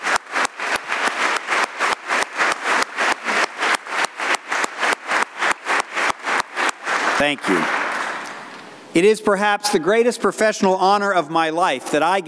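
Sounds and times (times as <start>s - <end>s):
audience applause: 0.0s - 8.6s
speech: 7.2s - 7.8s, 9.0s - 12.2s.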